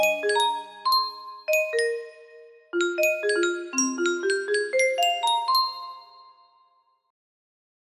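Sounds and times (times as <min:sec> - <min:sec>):
melody: 0:00.0 - 0:06.4.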